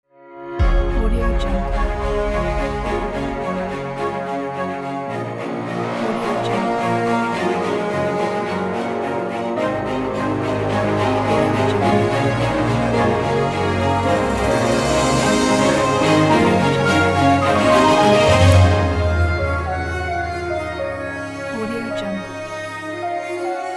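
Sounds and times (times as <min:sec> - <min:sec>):
cinematic ident music: 0:00.6 - 0:23.5.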